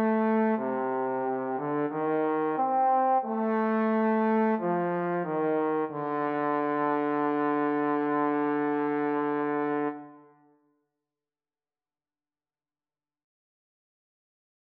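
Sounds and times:
trombone duet: 0.0 - 10.2.

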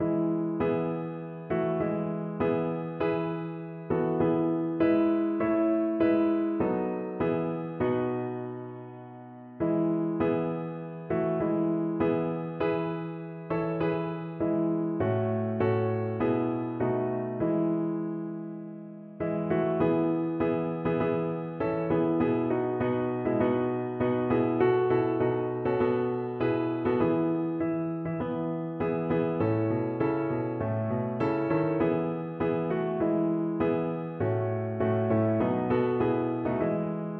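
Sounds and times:
piano piece: 0.0 - 37.1.

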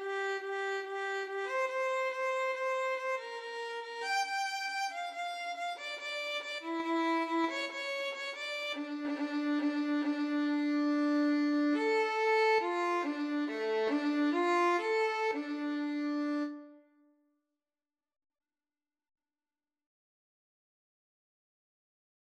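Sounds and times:
cello: 0.0 - 16.7
violin: 0.0 - 16.8.

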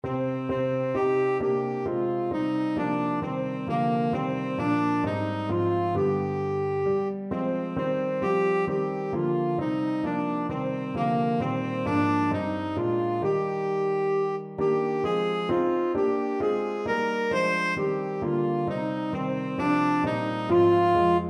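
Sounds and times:
tenor saxophone: 0.0 - 21.2.

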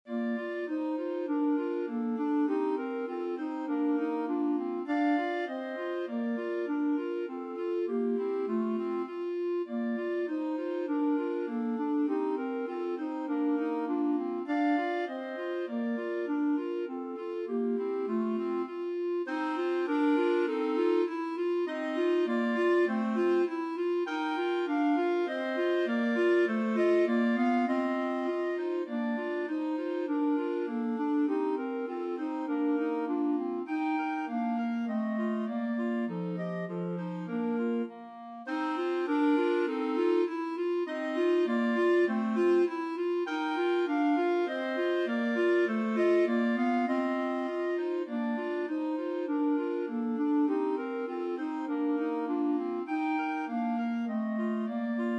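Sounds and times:
clarinet trio: 0.0 - 55.1.

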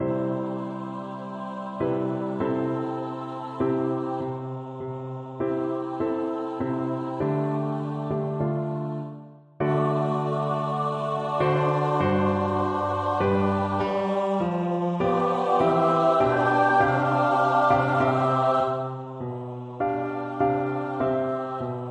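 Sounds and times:
choir singing: 0.0 - 21.8
piano: 0.0 - 21.8.

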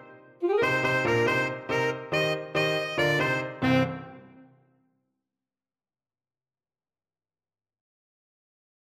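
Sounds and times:
rock alto saxophone: 0.0 - 4.5.

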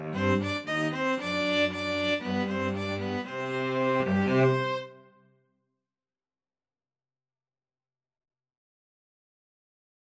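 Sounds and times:
string trio playing: 0.0 - 5.0.

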